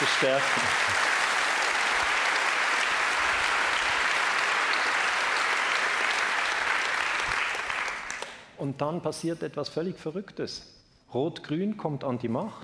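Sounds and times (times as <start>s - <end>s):
audience applause: 0.0s - 8.4s
speech: 0.2s - 1.0s, 8.6s - 12.6s.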